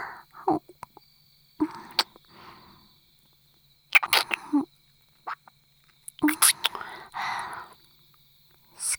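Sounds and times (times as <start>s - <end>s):
ear licking: 0.1s - 1.1s, 1.6s - 3.3s, 3.9s - 7.9s
hands rubbing ears: 5.3s - 7.7s.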